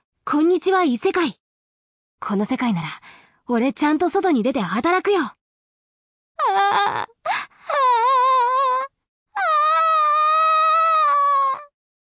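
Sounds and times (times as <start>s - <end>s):
speech: 0.3s - 1.4s, 2.2s - 5.4s, 6.4s - 7.4s
woman screaming and wailing: 7.7s - 11.7s.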